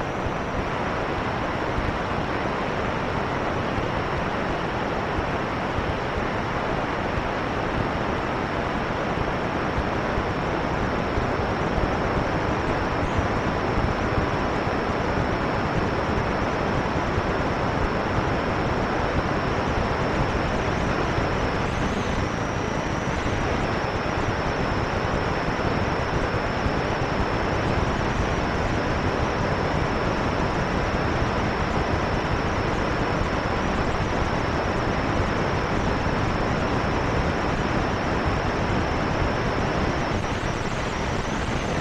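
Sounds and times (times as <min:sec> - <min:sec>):
thin steady high whine: 0:00.0 - 0:41.8
radio interference hiss and rumble: 0:20.0 - 0:41.8.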